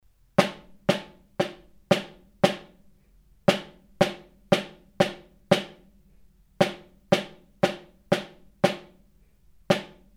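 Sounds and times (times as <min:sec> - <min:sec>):
snare drum: 0:00.4 - 0:02.8, 0:03.5 - 0:05.9, 0:06.6 - 0:09.0, 0:09.7 - 0:10.1.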